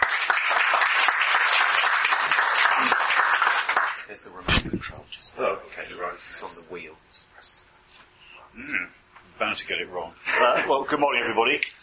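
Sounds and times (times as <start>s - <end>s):
audience applause welcoming a professor to the stage before a lecture: 0.0s - 4.0s
speech: 8.6s - 11.8s.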